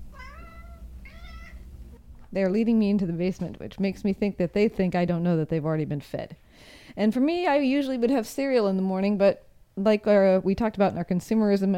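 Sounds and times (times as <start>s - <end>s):
cats meowing before breakfast: 0.0s - 1.8s
speech: 2.3s - 11.7s.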